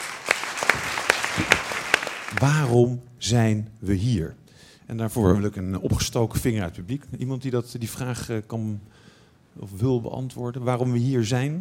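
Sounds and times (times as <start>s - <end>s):
audience applause: 0.0s - 2.7s
speech: 2.4s - 9.0s, 9.6s - 11.5s.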